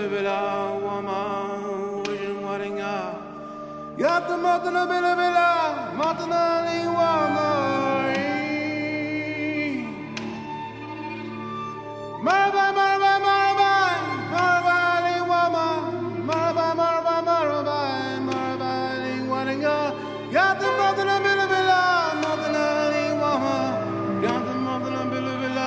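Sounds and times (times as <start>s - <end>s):
improvised music: 0.0s - 25.6s.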